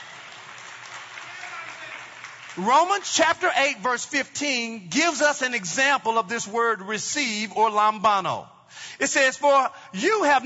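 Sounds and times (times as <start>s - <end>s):
audience hand clapping: 0.0s - 3.4s
speech: 2.6s - 10.4s.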